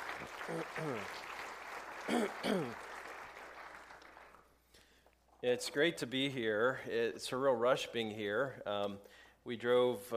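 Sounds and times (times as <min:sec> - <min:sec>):
audience applause welcoming guest speakers: 0:00.0 - 0:04.5
speech: 0:00.5 - 0:01.2, 0:02.1 - 0:02.8, 0:05.4 - 0:10.1.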